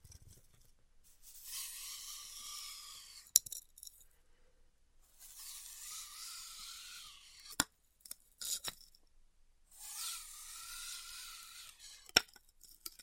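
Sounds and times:
styrofoam being cut with a heated tool: 1.4s - 3.4s, 5.2s - 7.6s, 9.8s - 12.2s.

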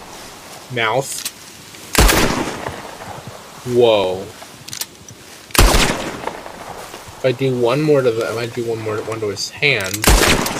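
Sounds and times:
speech: 0.7s - 1.3s, 3.6s - 4.4s, 7.2s - 10.5s
single gunshot in the video game Red Dead Redemption 2: 2.0s - 2.9s, 5.6s - 6.7s, 10.0s - 10.5s.

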